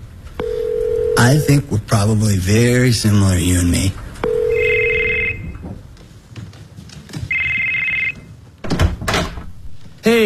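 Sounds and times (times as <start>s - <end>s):
phone ringing: 0.4s - 1.7s, 4.2s - 5.6s, 7.3s - 8.3s
speech: 1.2s - 4.0s.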